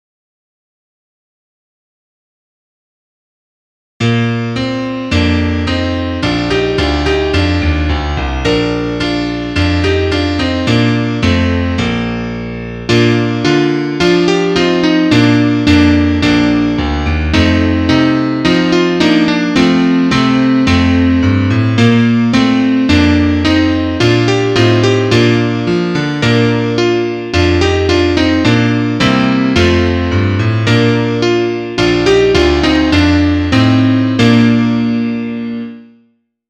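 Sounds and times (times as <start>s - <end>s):
piano: 4.0s - 36.2s.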